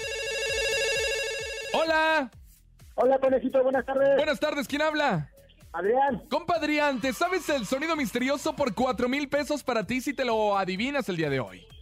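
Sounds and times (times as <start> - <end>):
telephone ringing for incoming call: 0.0 - 2.0
low thumping beat: 0.0 - 11.0
speech: 1.9 - 2.4, 3.0 - 11.7.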